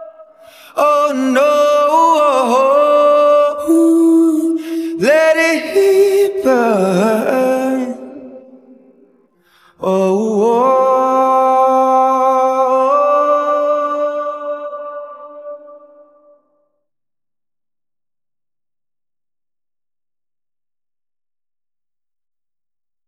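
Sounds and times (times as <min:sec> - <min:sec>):
person singing a cover: 0:00.0 - 0:09.0, 0:09.6 - 0:16.4.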